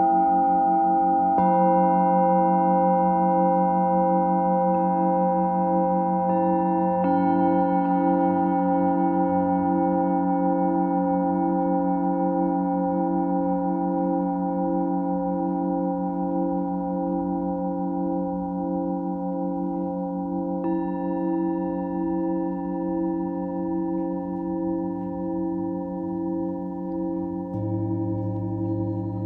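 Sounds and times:
Tibetan singing bowls ringing: 0.0s - 29.2s
soft low rumble: 27.5s - 29.2s.

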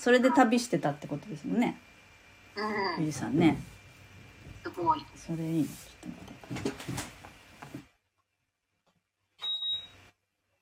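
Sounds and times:
speech: 0.0s - 1.9s, 2.6s - 3.7s, 4.6s - 7.2s
electric fan beeping as it stops: 9.4s - 10.2s.

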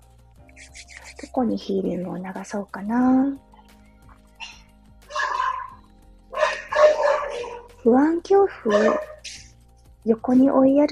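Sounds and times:
speech: 1.4s - 3.5s, 7.8s - 9.1s, 10.0s - 10.9s
pet dog barking at home: 4.4s - 7.8s, 8.6s - 9.5s.

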